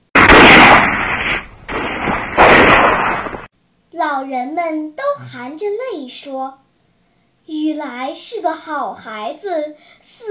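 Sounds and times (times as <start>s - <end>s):
gunshots by a river: 0.1s - 3.5s
speech: 4.0s - 6.6s, 7.5s - 10.3s.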